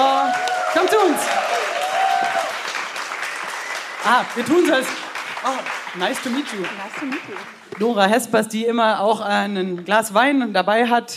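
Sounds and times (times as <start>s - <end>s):
crowd applauding loudly: 0.0s - 8.1s
speech: 4.0s - 11.1s.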